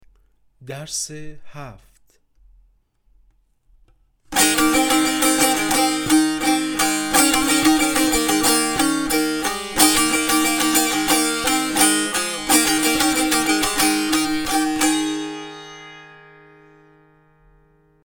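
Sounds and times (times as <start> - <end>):
tanbur practice: 4.3 - 18.0.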